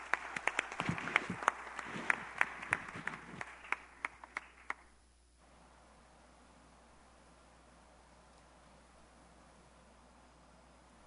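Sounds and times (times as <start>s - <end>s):
audience applauding: 0.0s - 4.9s.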